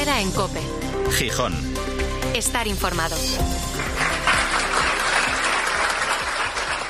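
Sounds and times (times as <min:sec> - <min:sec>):
speech: 0:00.2 - 0:03.6
crowd applause at a hospital farewell in Vigo: 0:03.6 - 0:06.8.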